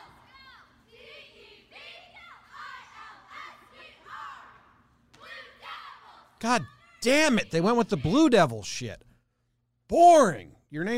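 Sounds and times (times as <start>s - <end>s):
cheerleading squad of young voices chanting a cheer: 0.0s - 8.1s
speech: 6.4s - 9.0s, 9.9s - 10.9s.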